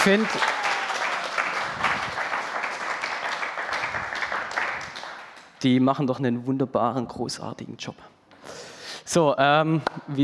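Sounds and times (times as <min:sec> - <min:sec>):
speech: 0:00.0 - 0:00.6, 0:05.6 - 0:08.1, 0:09.2 - 0:10.2
audience applause: 0:00.0 - 0:05.5.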